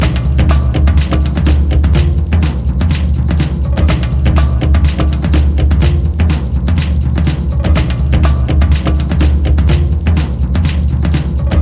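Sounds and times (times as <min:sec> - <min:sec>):
tension music loop: 0:00.0 - 0:11.5.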